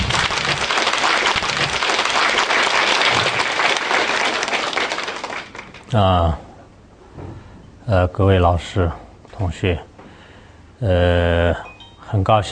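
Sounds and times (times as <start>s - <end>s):
warm audience applause: 0.0s - 5.9s
speech: 5.9s - 6.5s, 7.9s - 9.9s, 10.8s - 12.5s.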